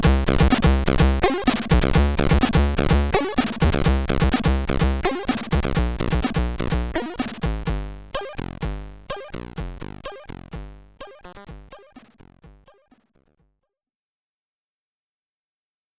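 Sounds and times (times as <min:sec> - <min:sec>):
SID chip stereo background music: 0:00.2 - 0:12.9.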